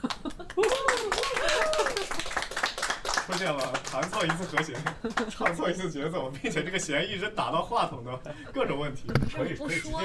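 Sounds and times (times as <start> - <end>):
applause: 0.0 - 5.6
speech: 3.3 - 10.0.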